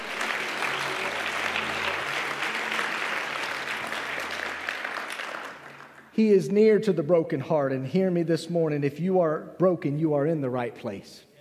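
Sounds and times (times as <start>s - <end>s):
audience applause: 0.0s - 6.1s
speech: 6.2s - 11.3s.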